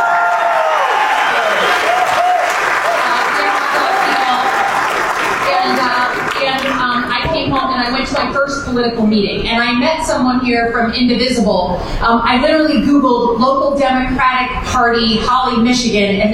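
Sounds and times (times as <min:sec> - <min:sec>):
audience clapping and applause: 0:00.0 - 0:08.3
speech: 0:08.7 - 0:16.3.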